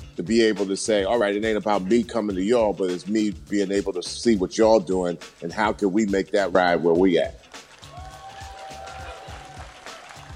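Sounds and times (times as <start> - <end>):
speech: 0.2 - 7.4
audience applause: 7.7 - 10.3.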